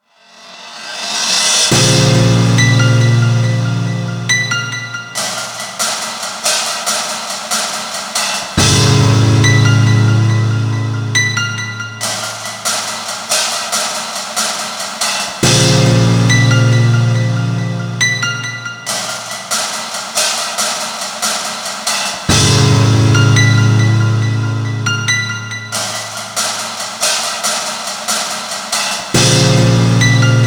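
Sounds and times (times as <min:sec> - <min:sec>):
theme music loop stem: 0:00.9 - 0:30.4.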